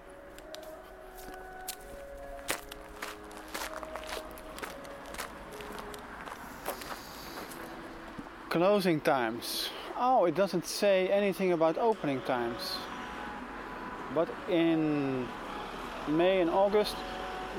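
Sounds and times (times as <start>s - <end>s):
footsteps walking back to a sign in a park: 0.3s - 7.7s
speech: 8.6s - 12.9s, 14.1s - 15.4s, 16.0s - 17.5s.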